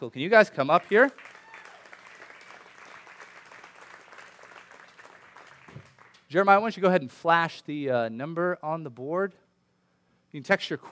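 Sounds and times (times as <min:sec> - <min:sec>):
speech: 0:00.0 - 0:01.3, 0:06.3 - 0:09.4, 0:10.3 - 0:10.8
audience applause: 0:00.8 - 0:06.2.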